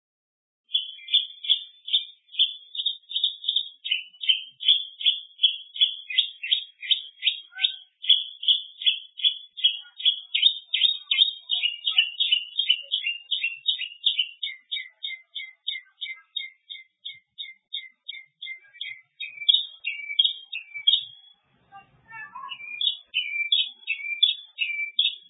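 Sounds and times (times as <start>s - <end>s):
bird song of rapid buzzy trilled bursts and thin high whistled notes: 0.7s - 25.2s.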